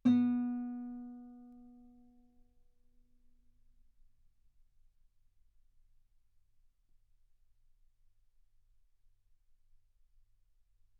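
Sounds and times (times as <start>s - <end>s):
guitar note B3: 0.0s - 1.7s.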